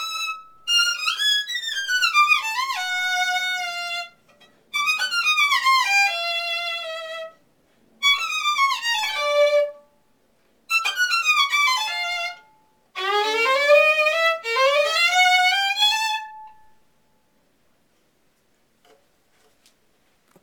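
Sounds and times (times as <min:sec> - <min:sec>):
violin: 0:00.0 - 0:07.4, 0:08.0 - 0:10.0, 0:10.7 - 0:16.9.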